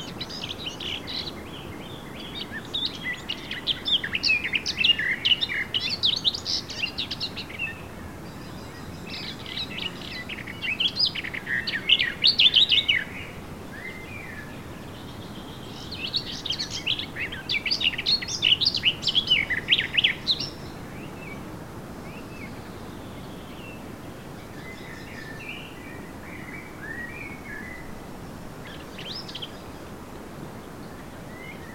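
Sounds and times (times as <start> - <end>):
Eurasian blackcap song: 0.0 - 21.4, 22.0 - 28.0, 28.6 - 29.9, 30.6 - 31.7.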